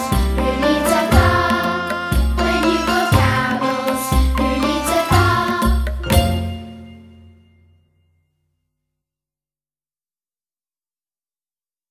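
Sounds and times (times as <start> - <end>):
singing voice: 0.0 - 6.3.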